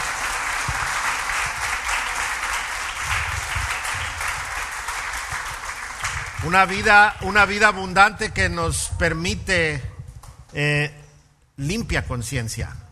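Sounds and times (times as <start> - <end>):
audience applause: 0.0 - 7.8
speech: 6.4 - 9.9, 10.5 - 11.0, 11.6 - 12.8.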